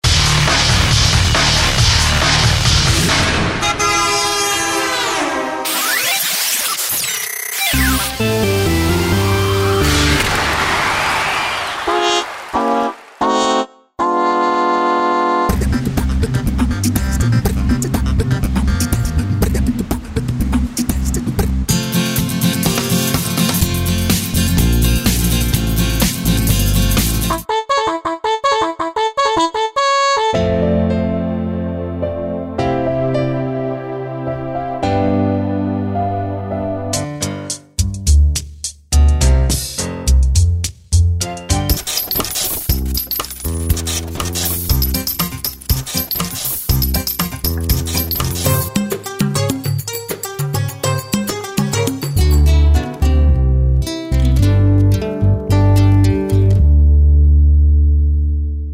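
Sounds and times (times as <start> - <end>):
music: 0.0 - 6.2, 7.6 - 58.7.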